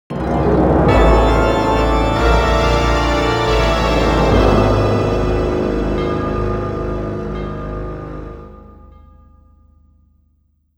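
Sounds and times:
defeat jingle: 0:00.9 - 0:08.8.

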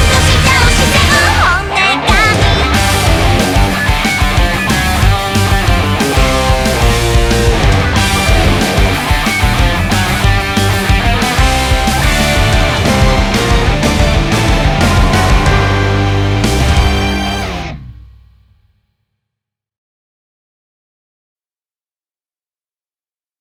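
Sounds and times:
opening background music: 0:00.0 - 0:18.6.

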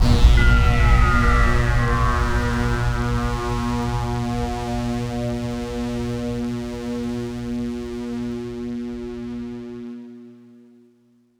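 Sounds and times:
generic cutscene stinger: 0:00.0 - 0:08.6.

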